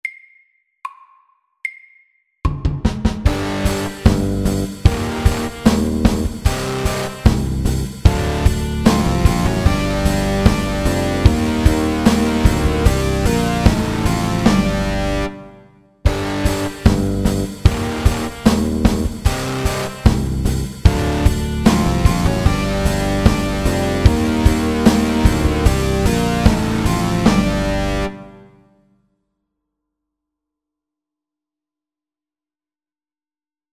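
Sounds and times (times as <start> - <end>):
slow rock beat: 3.3 - 15.3, 16.1 - 28.3.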